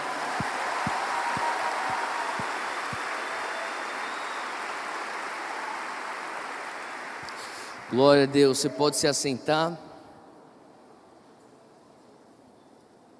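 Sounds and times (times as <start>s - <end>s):
audience applauding: 0.0s - 8.7s
speech: 7.9s - 9.9s.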